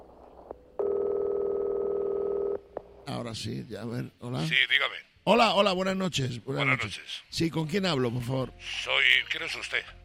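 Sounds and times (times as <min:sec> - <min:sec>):
ringback tone of an outgoing telephone call to Poland: 0:00.8 - 0:02.6
speech: 0:03.1 - 0:10.0.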